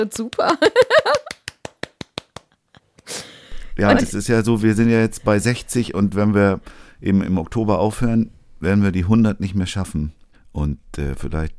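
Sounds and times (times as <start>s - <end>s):
speech: 0.0s - 1.4s, 3.8s - 11.5s
one person clapping hands: 0.2s - 2.6s.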